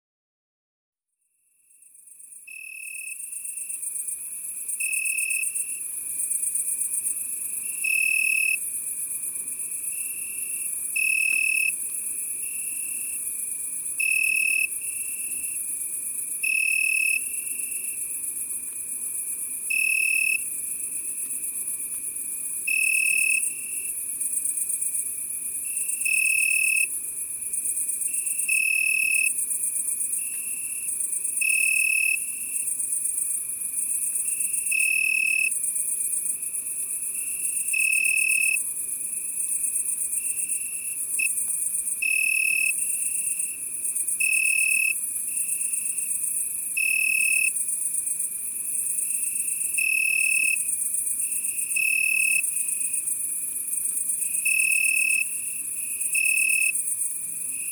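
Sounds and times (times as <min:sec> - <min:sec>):
Italian crickets chirping in the evening: 0:01.8 - 0:57.7.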